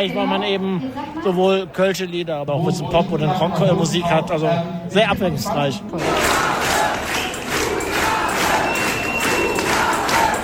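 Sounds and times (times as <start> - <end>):
speech: 0.0 - 6.6
concert crowd shouting and chanting for an encore: 3.4 - 10.4.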